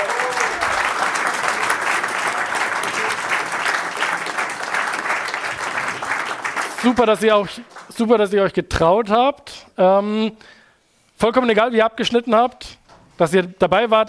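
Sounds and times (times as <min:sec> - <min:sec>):
audience applause: 0:00.0 - 0:07.9
speech: 0:06.8 - 0:10.6, 0:11.2 - 0:14.0.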